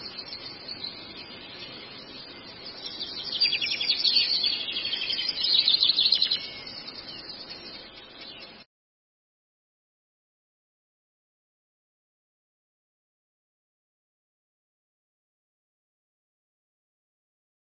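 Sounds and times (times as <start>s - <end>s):
Long-tailed shrike twittering song: 0.0s - 8.7s.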